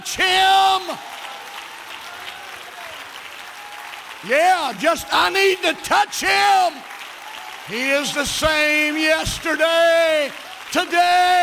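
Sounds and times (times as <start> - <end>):
speech: 0.0 - 1.2, 4.2 - 6.9, 7.7 - 11.4
audience clapping hands: 0.0 - 11.4.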